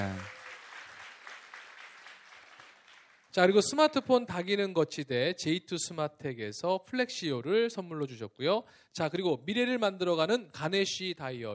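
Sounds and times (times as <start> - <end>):
audience applause: 0.0 - 3.3
speech: 3.4 - 11.5.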